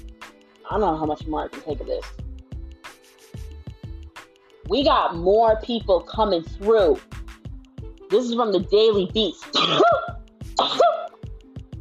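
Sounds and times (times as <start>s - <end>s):
speech: 0.7s - 2.2s, 4.7s - 7.2s, 8.1s - 10.9s
sneeze: 9.5s - 11.1s.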